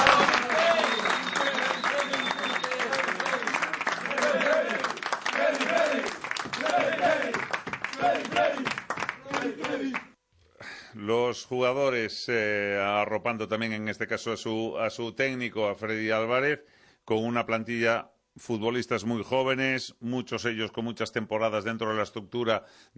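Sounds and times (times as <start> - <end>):
applause at press conference: 0.0 - 10.1
speech: 11.3 - 22.9.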